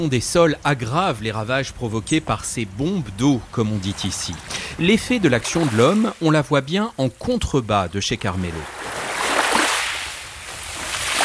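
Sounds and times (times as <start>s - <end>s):
speech: 0.0s - 8.8s
sea waves along a seaside promenade at Capo d'Orlando: 3.1s - 6.6s, 8.5s - 11.2s.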